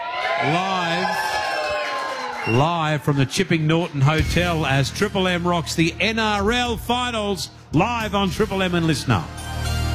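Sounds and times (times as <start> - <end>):
crowd cheering at the Chipping Norton Hotel during NRL finals festivities: 0.0 - 5.9
speech: 0.4 - 0.9, 2.5 - 9.5.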